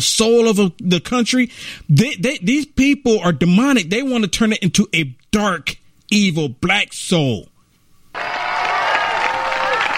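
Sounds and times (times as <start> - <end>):
speech: 0.0 - 7.5
audience clapping: 8.2 - 9.9.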